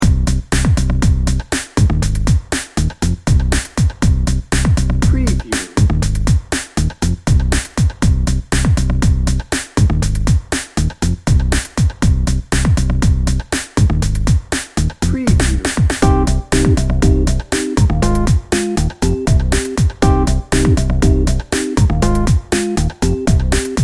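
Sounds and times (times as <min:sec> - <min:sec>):
energetic motion music bed: 0:00.0 - 0:23.8.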